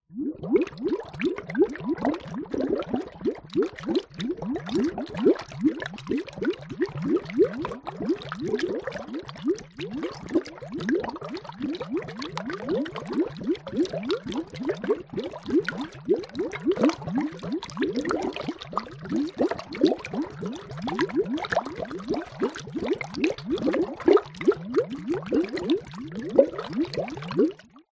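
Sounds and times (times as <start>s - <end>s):
horror cauldron bubbling: 0.1s - 27.6s.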